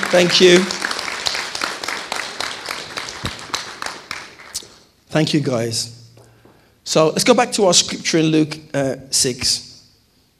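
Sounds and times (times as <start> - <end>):
audience applause: 0.0 - 4.7
speech: 0.1 - 0.8, 5.1 - 6.0, 6.9 - 9.7.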